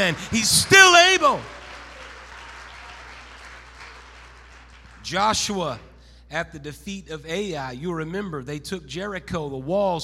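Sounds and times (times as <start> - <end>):
speech: 0.0 - 1.6, 5.1 - 10.0
audience clapping hands: 0.0 - 5.8.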